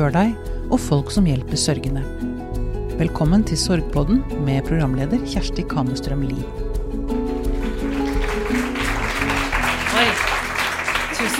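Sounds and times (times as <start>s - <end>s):
speech: 0.0s - 2.4s, 3.0s - 6.7s
live audience applause: 7.5s - 11.3s.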